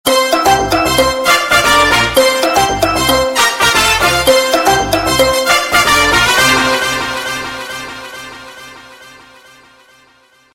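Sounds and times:
sms ringtone: 0.1 - 7.7.

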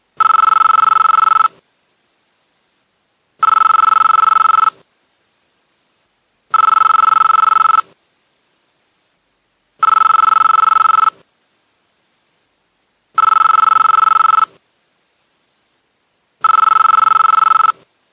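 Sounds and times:
ringtone: 0.2 - 1.5, 3.4 - 4.8, 6.6 - 7.9, 9.8 - 11.2, 13.2 - 14.5, 16.4 - 17.8.

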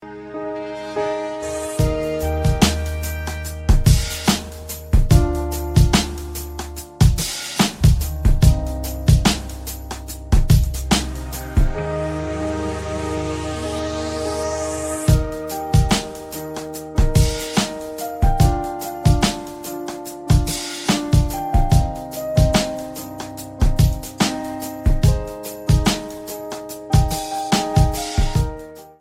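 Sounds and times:
romantic beat ringtone: 1.0 - 29.0.

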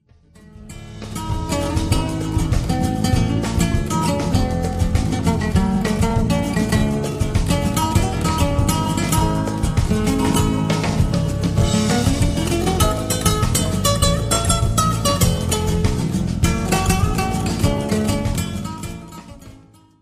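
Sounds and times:
guitar ringtone: 0.7 - 19.8.

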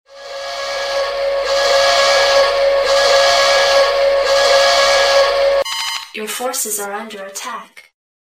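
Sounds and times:
warning ringtone: 1.1 - 6.4.

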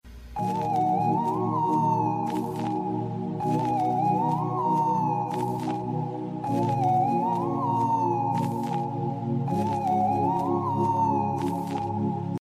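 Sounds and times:
iPhone music ringtone: 0.4 - 12.4.

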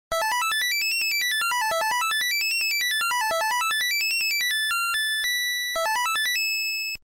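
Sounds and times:
video game ringtone: 0.1 - 7.0.

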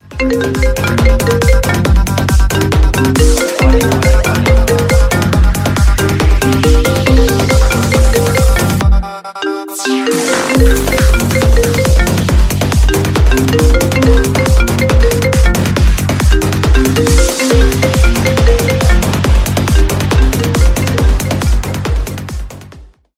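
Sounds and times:
Apple iPhone SE ringtone: 0.0 - 22.1.

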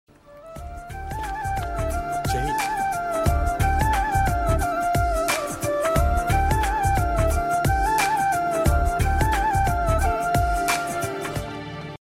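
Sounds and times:
flute ringtone: 0.4 - 11.5.

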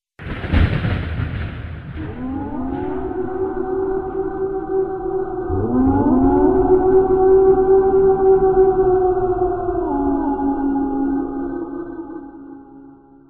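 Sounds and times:
Halloween horror ringtone: 2.0 - 12.7.

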